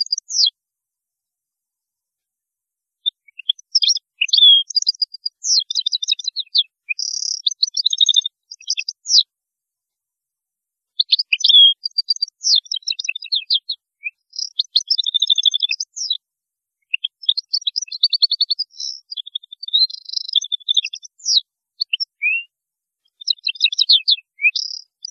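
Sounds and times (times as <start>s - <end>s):
European goldfinch twittering song: 0.0s - 0.5s, 3.1s - 9.2s, 11.0s - 16.2s, 16.9s - 22.4s, 23.1s - 25.0s.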